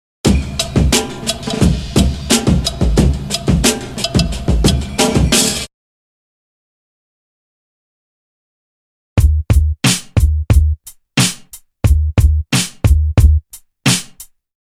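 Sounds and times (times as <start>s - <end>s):
drum loop: 0.3s - 5.7s, 9.2s - 14.3s.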